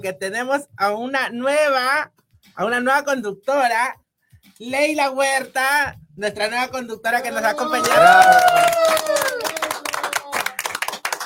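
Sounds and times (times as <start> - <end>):
speech: 0.0 - 9.2
applause: 7.5 - 11.2.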